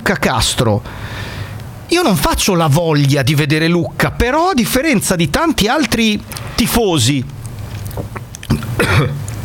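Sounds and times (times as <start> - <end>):
speech: 0.1 - 1.3, 1.9 - 7.4, 8.8 - 9.2
person coughing after something went down the wrong way: 8.5 - 9.2
throat clearing: 8.5 - 9.2.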